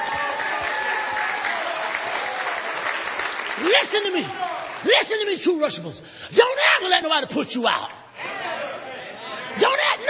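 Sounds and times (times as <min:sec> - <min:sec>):
audience applause: 0:00.0 - 0:04.9
speech: 0:03.6 - 0:08.0.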